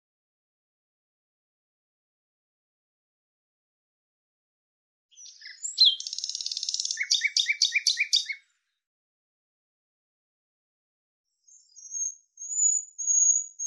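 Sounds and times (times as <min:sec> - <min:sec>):
bird singing buzzy chirps: 0:05.1 - 0:08.4, 0:11.5 - 0:13.6.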